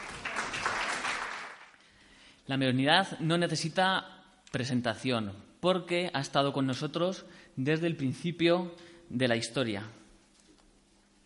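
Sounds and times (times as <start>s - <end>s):
audience applause: 0.0s - 1.8s
speech: 2.5s - 10.0s.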